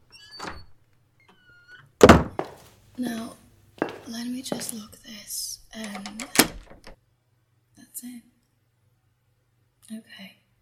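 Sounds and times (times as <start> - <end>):
door shutting with a loud heavy thud: 2.0 - 2.7, 5.9 - 7.0
soft shuffling knock: 2.2 - 4.9
speech: 3.0 - 3.4, 4.1 - 6.7, 8.0 - 8.3, 9.9 - 10.4.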